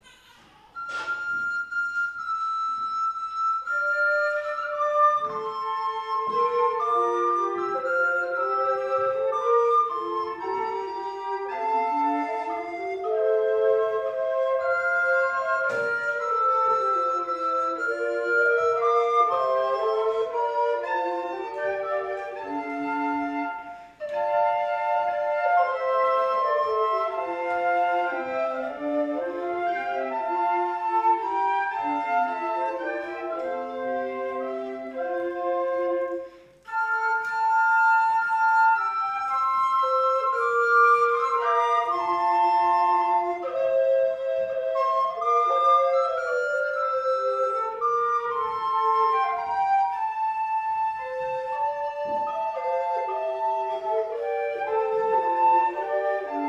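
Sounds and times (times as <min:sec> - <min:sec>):
instrumental music: 0:00.0 - 0:56.4.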